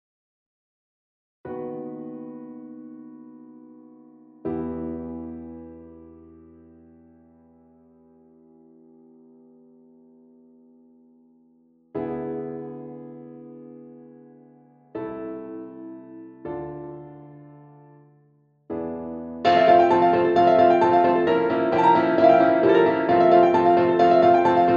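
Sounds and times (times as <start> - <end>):
instrumental music: 12.2 - 24.7.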